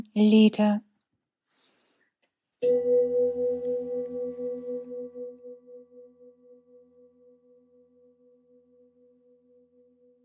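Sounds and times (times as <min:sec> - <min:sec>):
speech: 0:00.2 - 0:00.9, 0:02.6 - 0:03.2
meditation gong ringing: 0:02.6 - 0:10.2.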